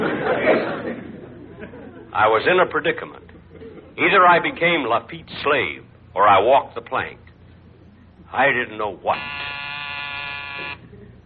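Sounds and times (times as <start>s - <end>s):
laughter: 0.0s - 4.6s, 10.8s - 11.2s
speech: 2.2s - 3.4s, 4.0s - 7.2s, 8.3s - 9.4s
door buzzer buzzing: 9.0s - 11.0s.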